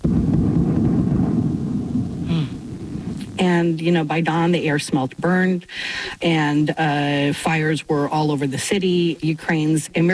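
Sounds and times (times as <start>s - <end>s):
brief higher hiss: 0.0s - 4.0s
very loud explosions: 0.0s - 5.0s
speech: 3.6s - 10.1s.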